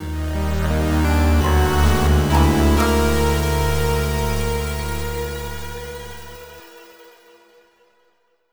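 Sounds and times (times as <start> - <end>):
adventure jingle: 0.6 - 6.5.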